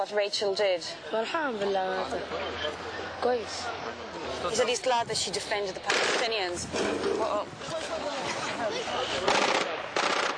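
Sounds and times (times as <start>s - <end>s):
speech: 0.0s - 8.0s, 8.6s - 9.7s
automatic gunfire from a speeding armored personnel carrier: 9.3s - 10.3s.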